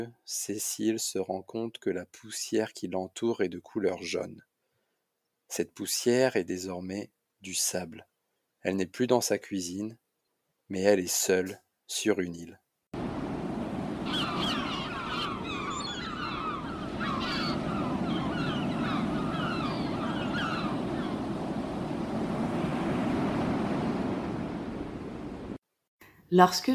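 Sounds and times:
speech: 0:00.0 - 0:04.5, 0:05.5 - 0:10.0, 0:10.7 - 0:12.6, 0:26.3 - 0:26.7
sea waves washing onto a beach: 0:13.0 - 0:25.6
high chirping calls: 0:14.0 - 0:22.2.

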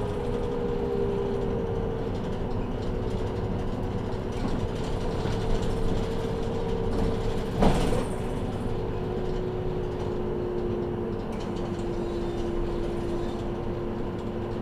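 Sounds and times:
Saihi bus engine rumble: 0:00.0 - 0:14.6.

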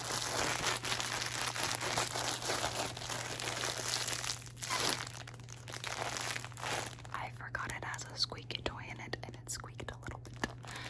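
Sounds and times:
scrunchies squeezed and handled, rustling and crinkling: 0:00.0 - 0:07.7, 0:10.2 - 0:10.8
faint whispering: 0:07.2 - 0:10.2.

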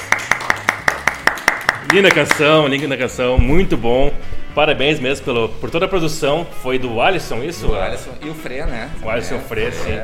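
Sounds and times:
hand clapping: 0:00.0 - 0:03.1
speech: 0:01.9 - 0:10.0.

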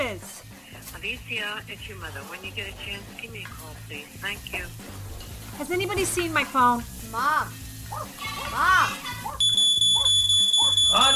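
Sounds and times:
speech: 0:01.0 - 0:09.3, 0:11.0 - 0:11.1
smoke alarm blaring: 0:09.3 - 0:11.1.

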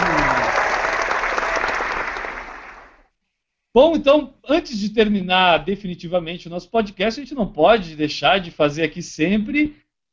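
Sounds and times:
applause: 0:00.0 - 0:03.1
speech: 0:03.8 - 0:09.8.

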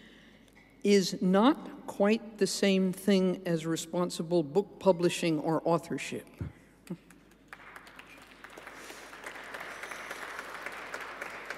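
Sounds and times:
speech: 0:00.8 - 0:07.1
audience applause: 0:07.5 - 0:11.5.

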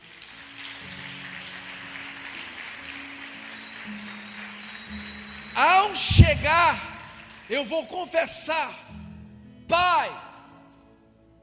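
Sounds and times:
audience applause: 0:00.0 - 0:08.4
low sustained keyboard or organ chords: 0:04.9 - 0:07.2
speech: 0:05.6 - 0:06.9, 0:07.5 - 0:08.9, 0:09.7 - 0:10.2.

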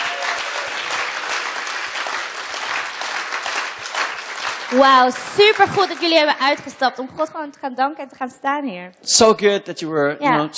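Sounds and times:
audience applause: 0:00.0 - 0:06.8
speech: 0:04.7 - 0:10.5.

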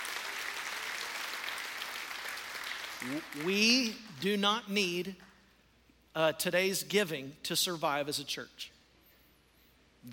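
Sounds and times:
audience clapping: 0:00.0 - 0:04.2
speech: 0:03.0 - 0:05.3, 0:06.1 - 0:08.8.

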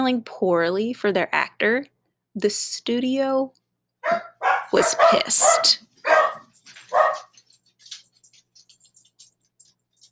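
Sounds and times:
speech: 0:00.0 - 0:05.9
dogs barking: 0:04.0 - 0:07.6.

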